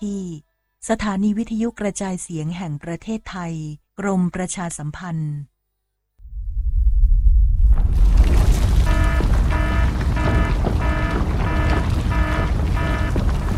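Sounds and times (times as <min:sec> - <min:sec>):
speech: 0:00.0 - 0:05.5
earthquake rumbling and shaking: 0:06.2 - 0:13.5.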